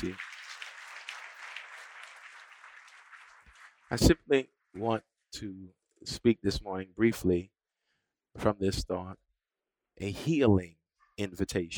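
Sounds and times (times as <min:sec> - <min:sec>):
speech: 0:00.0 - 0:00.3, 0:03.9 - 0:07.6, 0:08.4 - 0:09.2, 0:10.0 - 0:11.7
audience hand clapping: 0:00.0 - 0:04.2.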